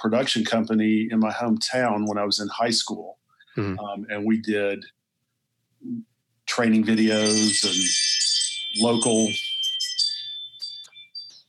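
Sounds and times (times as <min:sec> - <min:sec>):
speech: 0:00.0 - 0:05.0, 0:05.8 - 0:08.1, 0:08.7 - 0:09.4
Ring smart video doorbell chime: 0:06.9 - 0:11.4.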